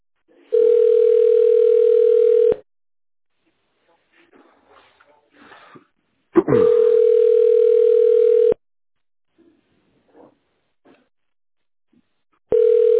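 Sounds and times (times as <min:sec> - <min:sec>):
telephone ringback tone: 0:00.5 - 0:02.6, 0:06.6 - 0:08.6, 0:12.5 - 0:12.9.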